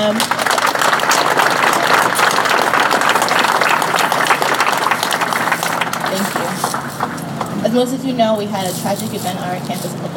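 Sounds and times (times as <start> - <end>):
speech: 0.0 - 0.4, 7.8 - 10.1
crowd applauding: 0.0 - 7.6.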